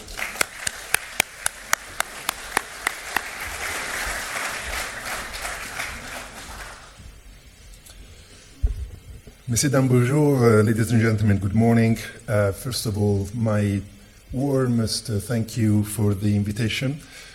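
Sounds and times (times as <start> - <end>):
audience applause welcoming keynote speaker: 0.0 - 7.1
speech: 9.5 - 17.2.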